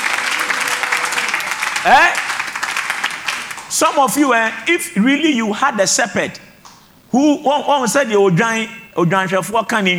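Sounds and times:
person giving a short rising whoop or shout: 0:00.0 - 0:02.1
audience clapping: 0:00.0 - 0:04.0
speech: 0:01.8 - 0:02.2, 0:03.7 - 0:06.4, 0:07.1 - 0:09.9.

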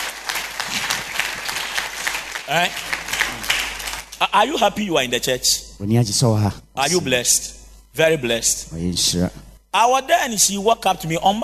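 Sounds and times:
audience applause: 0:00.0 - 0:04.2
speech: 0:02.5 - 0:03.5, 0:04.2 - 0:11.4.

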